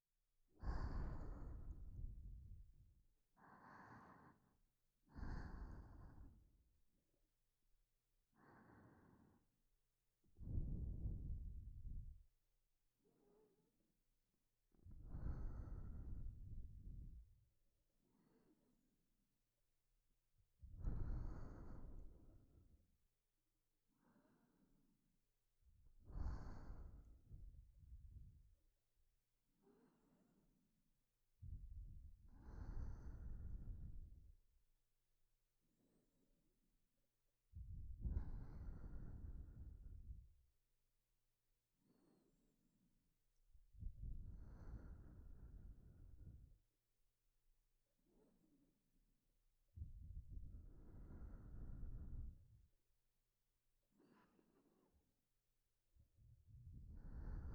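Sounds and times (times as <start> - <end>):
person breathing in sleep: 0.5 - 2.8, 3.4 - 6.6, 8.3 - 9.6, 10.4 - 12.2, 14.8 - 17.3, 18.1 - 18.7, 20.6 - 22.6, 23.9 - 24.8, 26.0 - 28.3, 29.6 - 30.4, 31.4 - 34.3, 37.6 - 40.2, 43.8 - 46.5, 49.8 - 52.4, 56.5 - 57.5.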